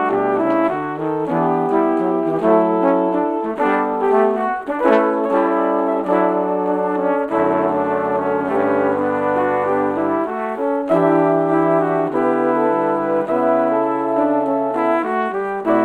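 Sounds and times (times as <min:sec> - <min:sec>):
trumpets playing: 0:00.0 - 0:15.8.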